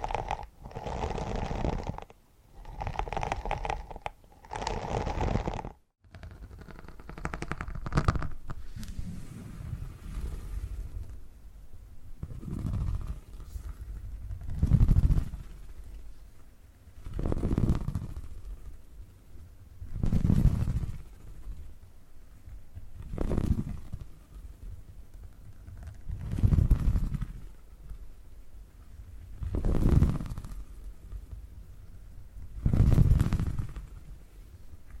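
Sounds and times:
deep rumbling purring: 0.0s - 11.3s, 12.2s - 16.2s, 17.0s - 19.2s, 19.8s - 21.6s, 23.0s - 24.7s, 25.6s - 27.6s, 29.3s - 31.3s, 32.5s - 34.2s.

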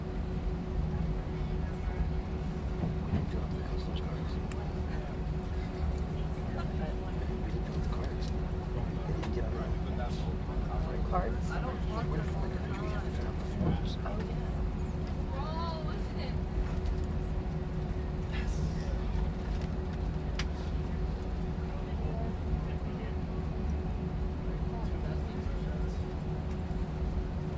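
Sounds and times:
airplane cabin roar: 0.0s - 27.5s.

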